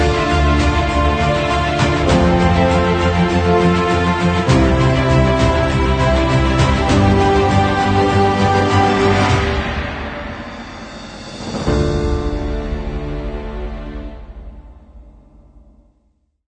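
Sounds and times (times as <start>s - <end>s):
epic uplifting inspiring cinematic music: 0.0s - 15.9s.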